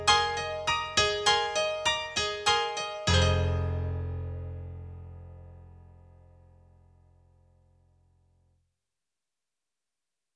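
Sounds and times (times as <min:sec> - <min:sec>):
Roland SonicCell E-Grand digital piano: 0:00.0 - 0:06.1.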